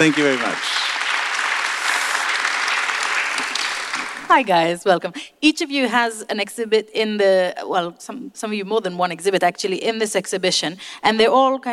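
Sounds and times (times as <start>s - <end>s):
speech: 0.0s - 0.7s, 4.3s - 11.7s
audience applause for three exhibition artists joining the stage: 0.0s - 4.4s.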